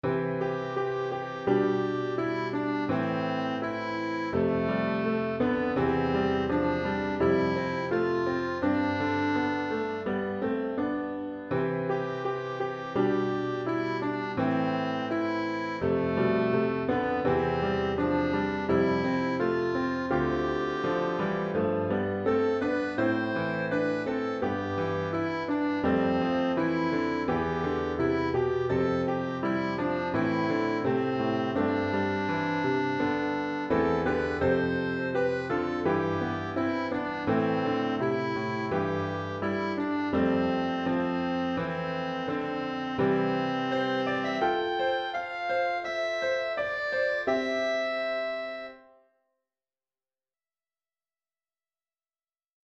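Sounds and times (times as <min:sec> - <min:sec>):
piano: 0:00.0 - 0:49.4.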